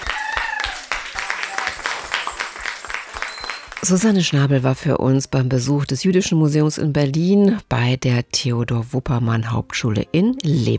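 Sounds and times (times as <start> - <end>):
applause: 0.0 - 4.3
speech: 3.8 - 10.7.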